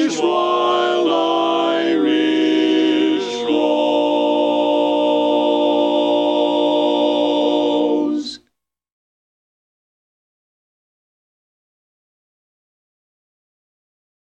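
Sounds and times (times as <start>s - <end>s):
tenor singing: 0.0s - 8.4s.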